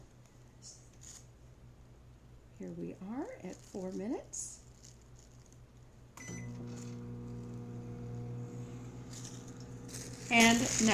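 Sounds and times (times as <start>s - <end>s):
speech: 2.6s - 4.6s, 10.3s - 10.9s
microwave oven running: 6.2s - 10.9s.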